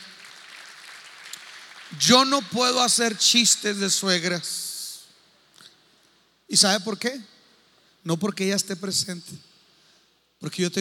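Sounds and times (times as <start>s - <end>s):
audience applauding: 0.0s - 2.4s
speech: 1.9s - 4.6s, 6.5s - 7.4s, 8.0s - 9.5s, 10.4s - 10.8s.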